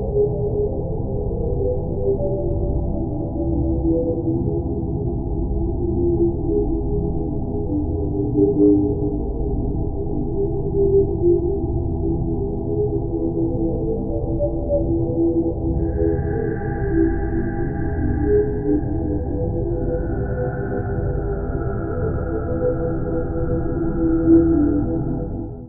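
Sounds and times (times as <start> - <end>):
tonal ethereal sci-fi mystical dreamy drone atmosphere: 0.0 - 25.6.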